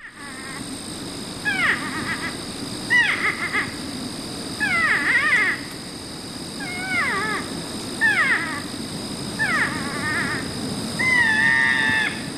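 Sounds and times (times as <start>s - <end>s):
North American porcupine calls: 1.4s - 3.8s, 4.6s - 5.7s, 6.6s - 8.7s, 9.4s - 12.3s.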